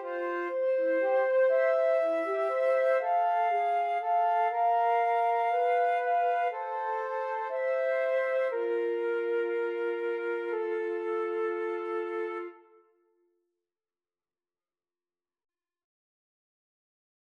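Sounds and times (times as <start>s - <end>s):
flute trio playing a romance: 0.0s - 12.7s.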